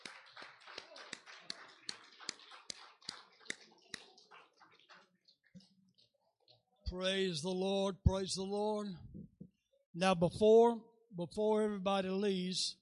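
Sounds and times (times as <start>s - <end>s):
audience clapping hands: 0.0s - 6.1s
speech: 6.9s - 9.1s, 10.0s - 12.8s.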